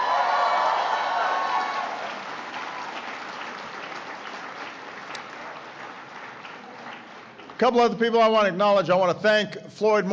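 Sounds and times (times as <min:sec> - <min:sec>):
audience applause: 0:00.0 - 0:07.8
speech: 0:07.6 - 0:10.1.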